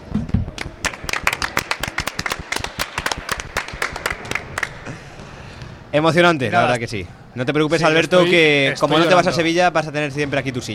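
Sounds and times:
applause and clapping: 0:00.6 - 0:05.0
speech: 0:06.0 - 0:10.7.

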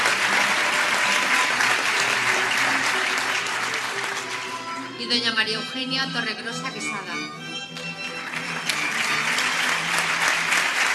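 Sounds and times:
audience applause: 0:00.0 - 0:05.0, 0:08.0 - 0:10.9
speech: 0:05.1 - 0:07.8.

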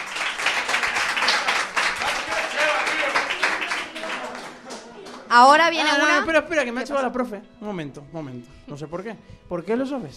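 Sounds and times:
crowd applause: 0:00.0 - 0:05.3
speech: 0:05.4 - 0:10.1.

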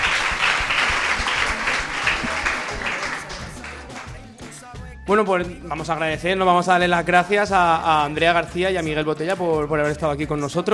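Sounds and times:
audience applause: 0:00.0 - 0:04.2
speech: 0:05.1 - 0:10.7.

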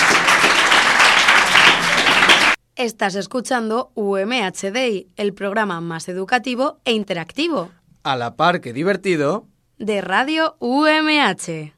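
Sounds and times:
audience applause: 0:00.0 - 0:02.6
speech: 0:02.8 - 0:11.7.

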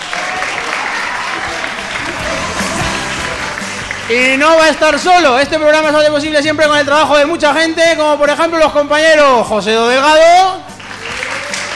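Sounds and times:
audience applause: 0:00.0 - 0:05.1, 0:10.8 - 0:11.7
speech: 0:04.1 - 0:10.7.

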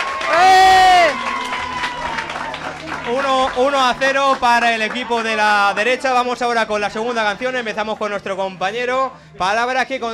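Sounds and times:
audience applause: 0:00.0 - 0:06.7
speech: 0:03.5 - 0:10.1.

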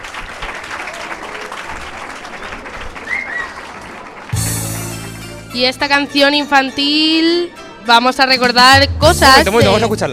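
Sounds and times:
audience applause: 0:00.0 - 0:04.6
speech: 0:05.5 - 0:10.1.

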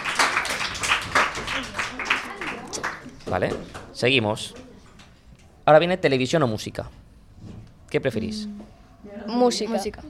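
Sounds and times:
small group clapping: 0:00.0 - 0:05.2
speech: 0:03.3 - 0:04.6, 0:05.6 - 0:07.0, 0:07.9 - 0:10.0.

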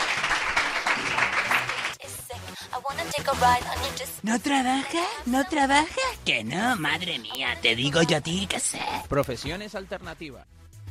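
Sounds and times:
crowd applauding: 0:00.0 - 0:02.0
speech: 0:03.1 - 0:10.6.

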